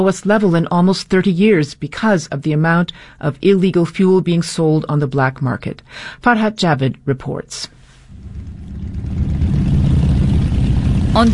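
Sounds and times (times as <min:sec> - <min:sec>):
speech: 0:00.0 - 0:07.8, 0:11.2 - 0:11.3
many motorbike engines running at border gathering: 0:08.1 - 0:11.3.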